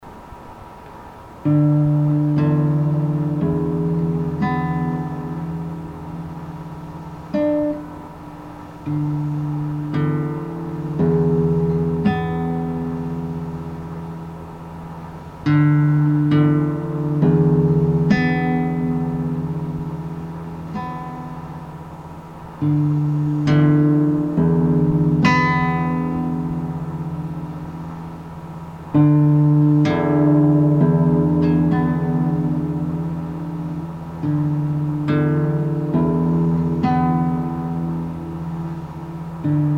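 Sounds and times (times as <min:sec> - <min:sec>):
guitar: 0:00.0 - 0:39.7.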